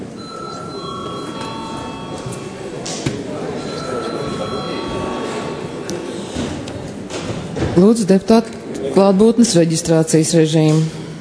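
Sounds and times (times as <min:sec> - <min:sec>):
parliament session bell ringing: 0:00.2 - 0:02.7, 0:03.6 - 0:05.9
speech: 0:07.8 - 0:11.0.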